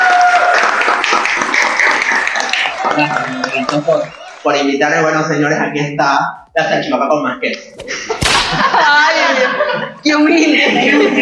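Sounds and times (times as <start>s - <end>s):
applause: 0.0s - 4.7s
laughter: 1.3s - 4.8s, 7.8s - 11.1s
speech: 2.9s - 11.1s.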